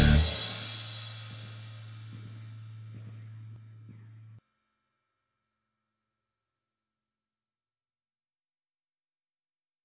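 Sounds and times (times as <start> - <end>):
tension music: 0.0 - 4.3.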